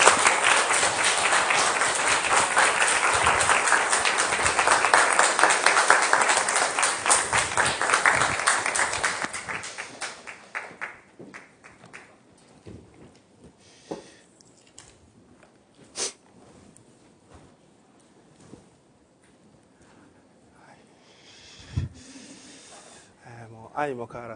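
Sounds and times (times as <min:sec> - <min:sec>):
audience applause: 0:00.0 - 0:12.1.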